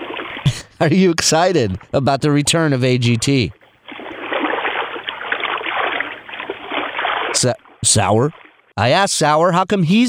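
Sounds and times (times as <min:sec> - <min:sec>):
underwater bubbling sound effect: 0:00.0 - 0:00.6, 0:03.5 - 0:08.7
speech: 0:00.8 - 0:03.6, 0:07.4 - 0:10.0.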